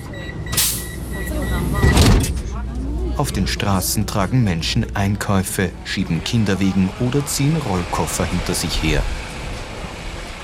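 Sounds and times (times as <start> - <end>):
subway train departing: 0.0 - 10.4
speech: 3.2 - 9.2.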